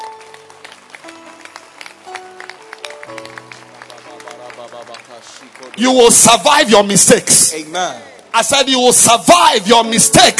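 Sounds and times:
audience clapping hands: 0.0 - 7.4
speech: 5.2 - 10.3.

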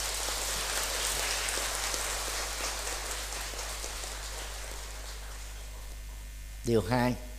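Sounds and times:
audience applause: 0.0 - 5.9
speech: 6.6 - 7.3.

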